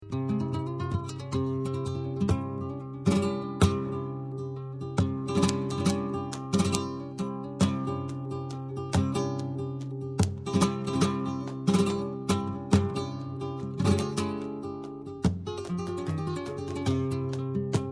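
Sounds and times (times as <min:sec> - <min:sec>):
flamenco music: 0:00.0 - 0:17.9.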